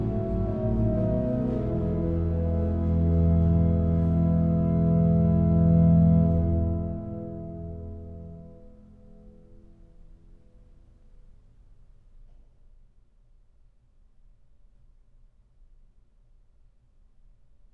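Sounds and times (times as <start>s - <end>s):
organ playing a hymn: 0.0s - 9.6s.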